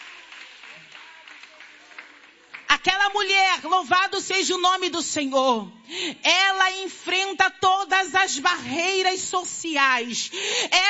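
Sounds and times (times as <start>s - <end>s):
congregation clapping in praise at a church service: 0.0s - 2.9s
speech: 2.8s - 10.8s.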